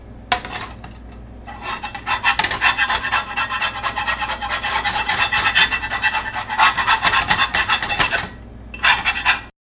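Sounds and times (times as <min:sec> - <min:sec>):
pan scraping: 0:00.3 - 0:09.5.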